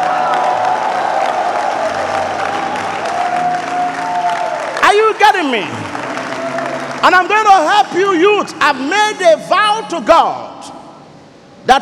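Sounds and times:
audience giving God a mighty ovation: 0:00.0 - 0:08.9
speech: 0:05.4 - 0:05.8, 0:07.0 - 0:10.4, 0:11.6 - 0:11.8.

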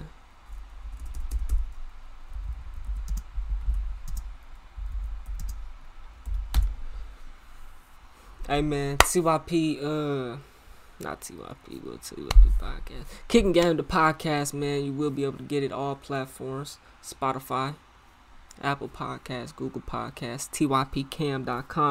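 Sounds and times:
fingers typing a name on a computer keyboard: 0:00.9 - 0:01.8, 0:02.7 - 0:06.7
speech: 0:08.5 - 0:17.8, 0:18.6 - 0:21.9.

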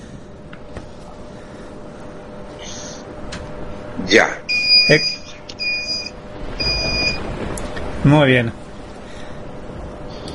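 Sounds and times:
low rumbling background: 0:00.0 - 0:10.3
speech: 0:04.1 - 0:05.2, 0:08.0 - 0:08.6
electronic alarm beeps: 0:04.5 - 0:07.2.

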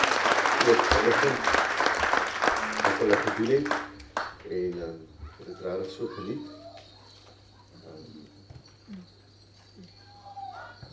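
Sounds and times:
audience applause: 0:00.0 - 0:04.6
speech: 0:00.6 - 0:01.6, 0:03.0 - 0:03.9, 0:04.5 - 0:06.6.

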